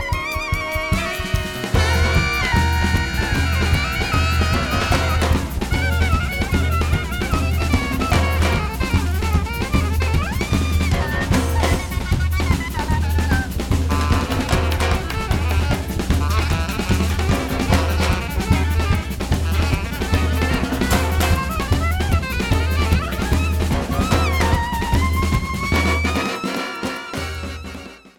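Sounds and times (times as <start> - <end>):
bass: 0.2 - 26.5, 27.2 - 28.1.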